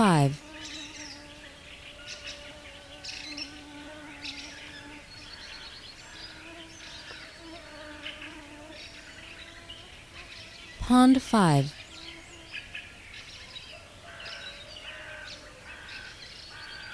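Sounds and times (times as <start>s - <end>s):
speech: 0.0s - 0.5s, 10.9s - 11.8s
birds singing: 0.1s - 10.8s, 11.7s - 16.9s.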